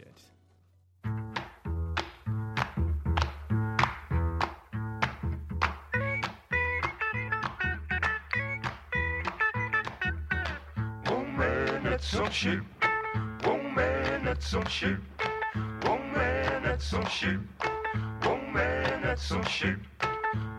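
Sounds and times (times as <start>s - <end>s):
skiffle-style rock and roll song intro: 1.1s - 20.5s
speech: 12.0s - 12.7s, 14.3s - 15.1s, 15.8s - 20.4s.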